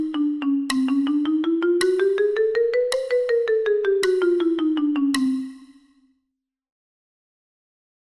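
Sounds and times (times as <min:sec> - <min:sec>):
mallet percussion: 0:00.0 - 0:06.0.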